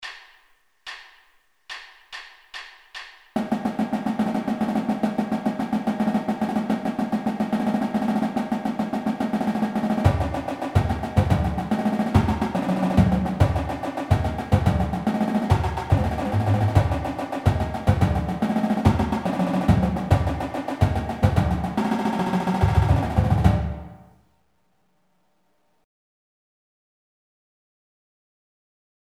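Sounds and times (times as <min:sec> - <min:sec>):
fast trippy drum music: 0:01.7 - 0:24.1.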